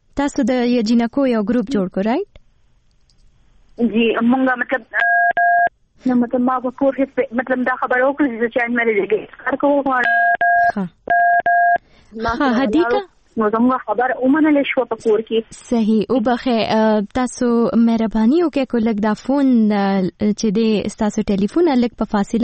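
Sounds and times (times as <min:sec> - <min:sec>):
speech: 0:00.2 - 0:02.4, 0:03.8 - 0:05.2, 0:06.0 - 0:22.4
two-tone phone keypad beep from phone touching caller's ear: 0:05.0 - 0:05.7, 0:10.0 - 0:11.8.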